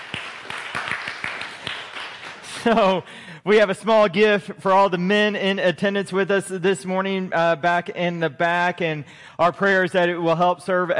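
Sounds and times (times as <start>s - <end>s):
church congregation clapping for fathers at a Father's Day service: 0.0s - 2.8s
speech: 2.6s - 10.9s.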